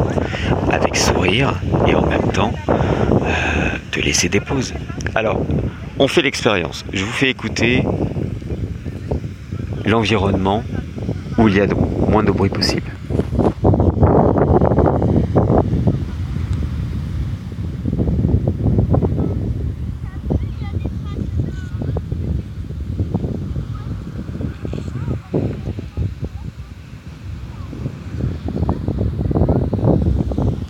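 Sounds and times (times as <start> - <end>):
ocean: 0.0 - 30.6
speech: 1.2 - 8.0, 9.8 - 10.8, 11.4 - 13.0.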